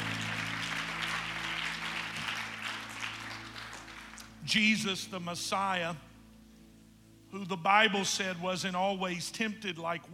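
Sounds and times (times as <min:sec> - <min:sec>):
audience clapping hands: 0:00.0 - 0:04.6
speech: 0:04.4 - 0:06.1, 0:07.3 - 0:10.1.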